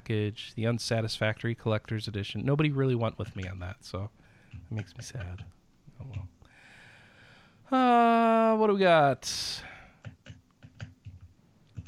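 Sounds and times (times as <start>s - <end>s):
speech: 0.1s - 6.4s, 7.7s - 9.7s
typing on a computer keyboard: 3.0s - 3.8s, 4.4s - 6.3s, 10.0s - 11.8s.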